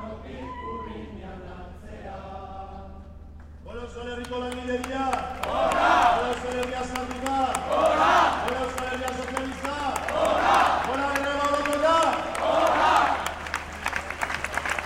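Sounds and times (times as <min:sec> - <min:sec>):
demonstration crowd in Donostia: 0:04.6 - 0:14.8.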